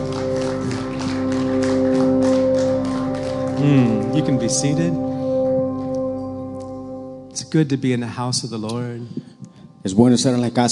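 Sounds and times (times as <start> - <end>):
crowd applauding: 0.0 - 5.0
sustained organ or keyboard chords: 0.0 - 10.6
speech: 3.6 - 5.1, 7.5 - 10.6.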